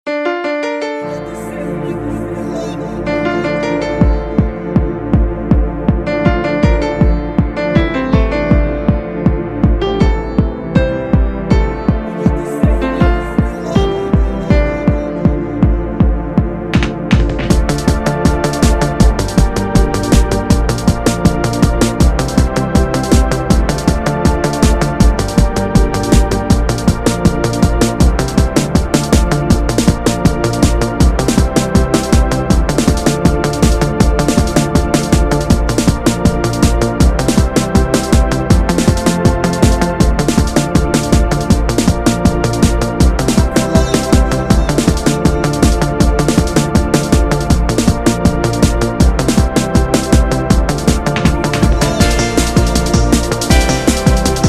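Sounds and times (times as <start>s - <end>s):
instrumental club mix: 0.2s - 54.4s.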